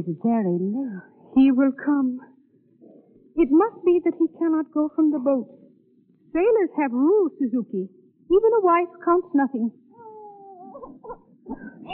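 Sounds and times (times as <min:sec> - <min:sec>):
speech: 0:00.0 - 0:02.3, 0:03.4 - 0:05.6, 0:06.3 - 0:09.8, 0:11.1 - 0:11.9
child crying: 0:10.0 - 0:11.0.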